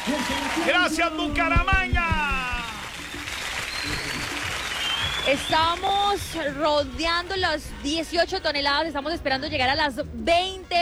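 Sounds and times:
crowd applause: 0.0s - 7.2s
speech: 0.2s - 2.1s, 5.3s - 10.8s.

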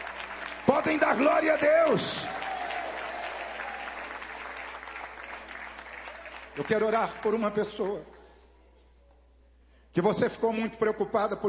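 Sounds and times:
audience clapping: 0.0s - 8.2s
speech: 0.7s - 2.5s, 6.6s - 8.1s, 10.0s - 11.4s.

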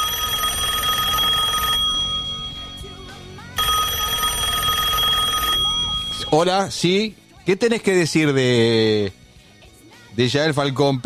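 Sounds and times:
telephone ringing: 0.0s - 6.8s
speech: 6.3s - 9.2s, 10.2s - 11.0s.

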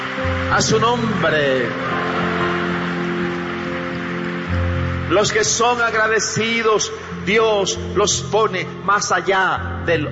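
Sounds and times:
audience applauding: 0.0s - 7.0s
speech: 0.5s - 2.2s, 5.1s - 10.1s.

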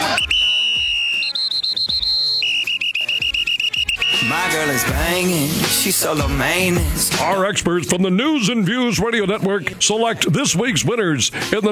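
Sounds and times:
whistle blown: 0.0s - 4.9s
speech: 4.7s - 11.6s.

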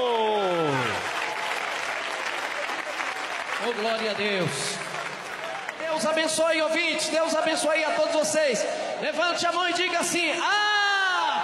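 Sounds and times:
audience clapping hands: 0.0s - 6.6s
speech: 3.7s - 4.8s, 5.9s - 10.7s.

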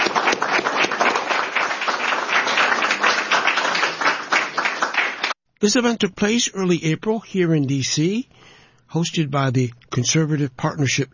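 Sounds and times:
audience applause: 0.0s - 5.4s
speech: 5.6s - 11.1s.

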